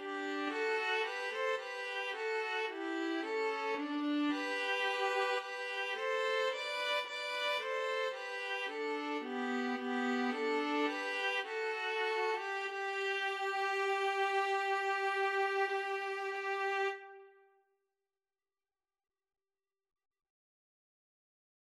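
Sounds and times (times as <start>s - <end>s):
string trio playing: 0.0s - 17.1s.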